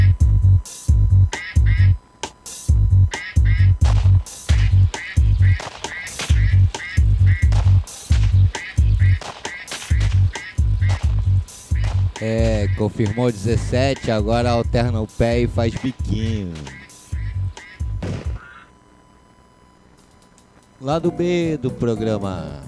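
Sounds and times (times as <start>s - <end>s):
steady thumping low beat: 0.0s - 18.4s
ducks quacking: 1.4s - 2.0s, 3.1s - 3.8s, 4.4s - 14.9s, 15.7s - 18.7s
speech: 12.2s - 16.8s, 20.8s - 22.6s.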